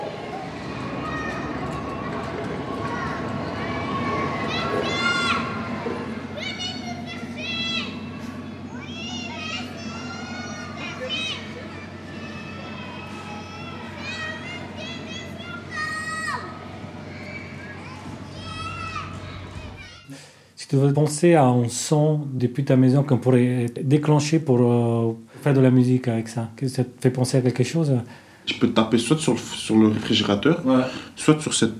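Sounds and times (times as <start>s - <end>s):
children shouting in a schoolyard: 0.0s - 20.3s
speech: 20.7s - 31.7s.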